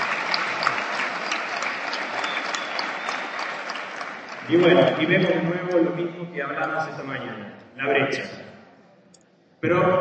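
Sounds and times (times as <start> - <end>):
audience applause: 0.0 - 5.4
speech: 4.5 - 8.4, 9.6 - 10.0.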